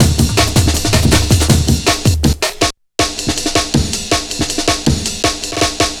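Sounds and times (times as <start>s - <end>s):
drum and bass drum loop: 0.0s - 5.9s.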